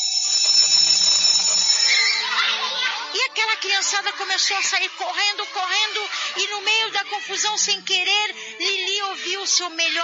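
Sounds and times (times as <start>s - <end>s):
electric school recess bell ringing: 0.0s - 2.9s
laughter: 1.8s - 10.0s
speech: 3.4s - 10.0s.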